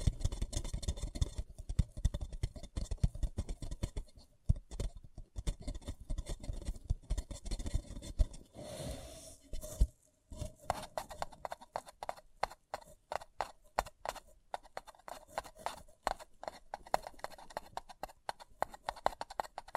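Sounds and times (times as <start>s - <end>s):
fingers tapping and scratching on a paper cup: 0.0s - 8.4s, 10.7s - 19.7s
smoother rubbing sound on a paper cup: 2.2s - 19.7s.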